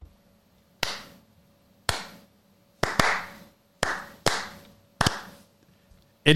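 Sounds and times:
slow hand claps: 0:00.8 - 0:01.2, 0:01.9 - 0:02.2, 0:02.8 - 0:05.4.

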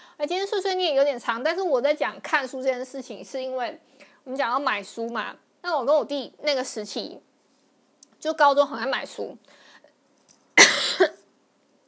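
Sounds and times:
speech: 0:00.2 - 0:07.3, 0:08.2 - 0:09.6
harsh cough from an itchy throat: 0:10.6 - 0:11.3.

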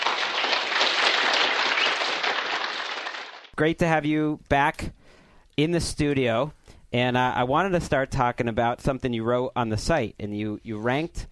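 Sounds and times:
studio show applause welcoming a guest: 0:00.0 - 0:03.6
speech: 0:03.6 - 0:05.0, 0:05.6 - 0:11.2.

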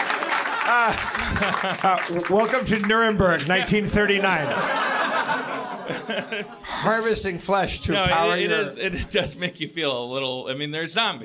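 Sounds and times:
laughter: 0:00.0 - 0:02.9, 0:03.5 - 0:09.9
audience applause: 0:00.0 - 0:06.0
speech: 0:00.7 - 0:11.2.

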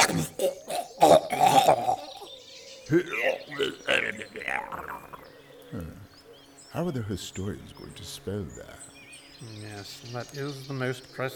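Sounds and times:
person's phlegmy gurgling cough with a death rattle: 0:00.0 - 0:02.3, 0:03.0 - 0:05.2
speech: 0:00.1 - 0:00.6, 0:02.9 - 0:05.1, 0:05.7 - 0:06.0, 0:06.7 - 0:11.3.

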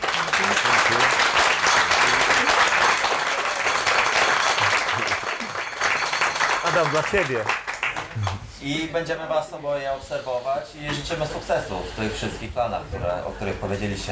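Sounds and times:
audience applause: 0:00.0 - 0:08.4
speech: 0:06.8 - 0:07.6, 0:08.2 - 0:14.1.

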